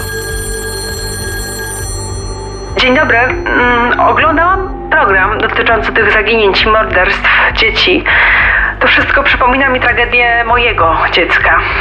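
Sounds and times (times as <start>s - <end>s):
telephone ringing: 0.0s - 5.9s
speech: 2.8s - 11.7s.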